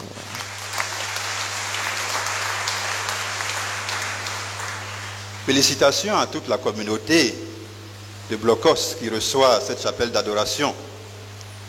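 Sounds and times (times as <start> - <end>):
congregation applauding new adoration chapel: 0.0 - 6.0
speech: 5.5 - 7.4, 8.3 - 10.9.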